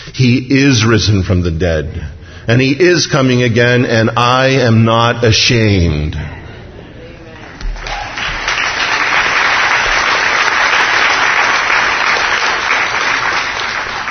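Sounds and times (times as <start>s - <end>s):
speech: 0.1s - 6.4s
audience clapping: 7.4s - 14.1s.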